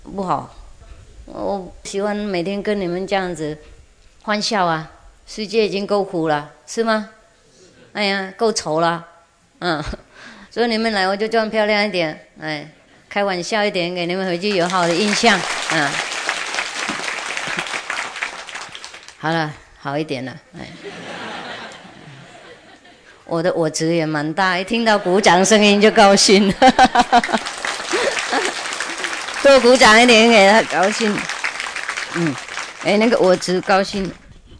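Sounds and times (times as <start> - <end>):
speech: 0.2 - 0.6, 1.3 - 7.2, 7.9 - 10.0, 10.6 - 16.1, 19.2 - 21.0, 23.3 - 27.5, 29.4 - 31.3, 32.1 - 34.2
audience applause: 14.5 - 19.2, 26.0 - 34.2
laughter: 16.8 - 17.9, 20.7 - 23.2, 24.8 - 29.6.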